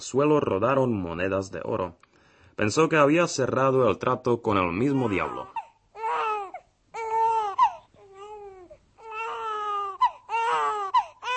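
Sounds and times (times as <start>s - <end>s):
speech: 0.0s - 5.6s
newborn baby crying: 4.8s - 11.3s.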